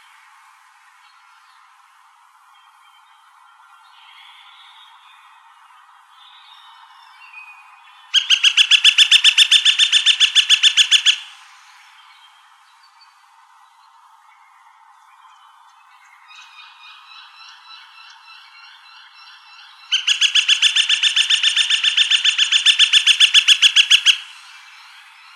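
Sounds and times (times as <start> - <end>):
Gilded Flicker woodpecker ringing call: 8.1 - 11.3, 18.9 - 24.5.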